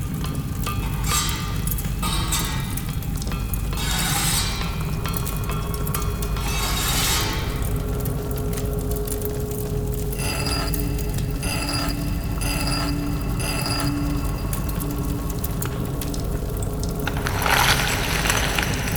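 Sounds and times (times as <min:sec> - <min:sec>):
mysterious forge temple ambience: 0:00.0 - 0:18.9.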